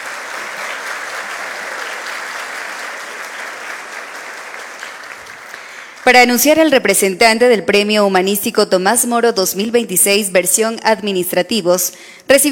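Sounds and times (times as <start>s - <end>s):
loud audience applause: 0.0s - 6.2s
speech: 6.1s - 12.5s.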